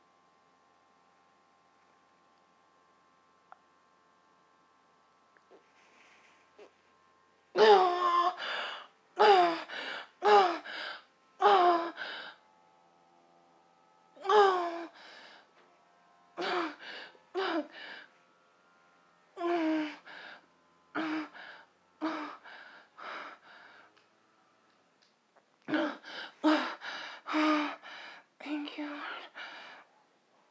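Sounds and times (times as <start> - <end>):
person moaning: 7.6 - 12.4, 14.2 - 15.4, 16.4 - 18.1, 19.4 - 20.4, 21.0 - 23.5, 25.7 - 28.0.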